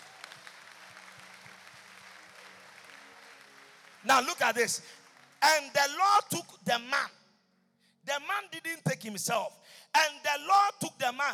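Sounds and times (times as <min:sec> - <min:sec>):
crowd clapping: 0:00.0 - 0:06.5
speech: 0:04.0 - 0:07.2, 0:08.1 - 0:11.3.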